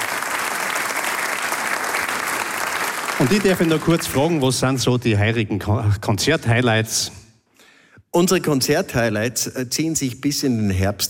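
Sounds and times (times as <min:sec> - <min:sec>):
audience applause: 0:00.0 - 0:04.6
speech: 0:03.2 - 0:07.2, 0:08.2 - 0:11.0.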